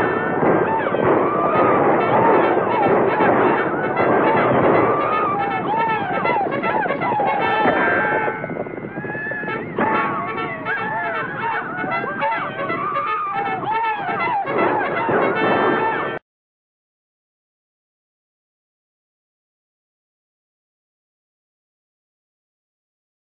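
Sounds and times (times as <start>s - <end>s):
western-style bugle call to attack: 0.0s - 16.2s.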